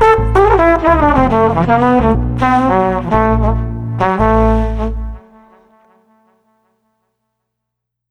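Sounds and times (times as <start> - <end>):
street trumpet combo playing cool jazz without drums: 0.0 - 5.6.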